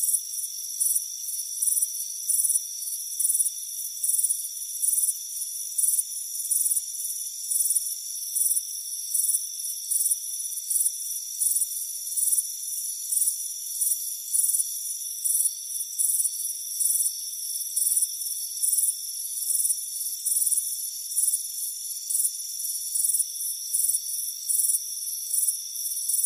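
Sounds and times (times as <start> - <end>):
crickets chirping: 0.0 - 26.2.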